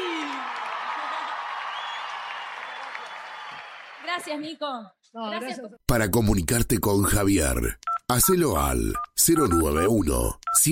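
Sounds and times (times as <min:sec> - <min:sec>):
audience applause for a performer: 0:00.0 - 0:04.4
speech: 0:04.1 - 0:10.7.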